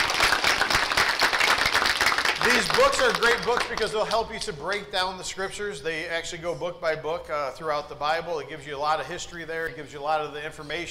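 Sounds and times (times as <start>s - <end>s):
audience clapping: 0.0s - 4.8s
speech: 2.6s - 10.8s.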